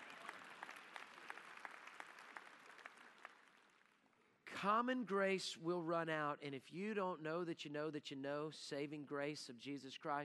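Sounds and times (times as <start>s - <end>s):
audience clapping: 0.0s - 4.2s
speech: 4.6s - 10.2s.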